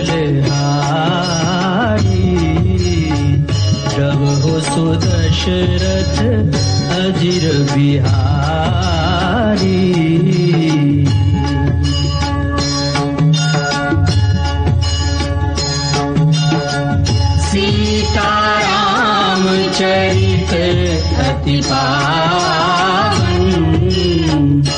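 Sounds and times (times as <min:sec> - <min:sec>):
bhakti ringtone: 0:00.1 - 0:24.7.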